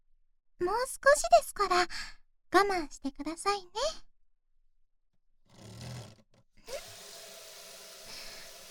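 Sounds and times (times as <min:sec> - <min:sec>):
speech: 0:00.6 - 0:04.1
water from a shower rinsing a treatment out of hair: 0:06.7 - 0:08.7.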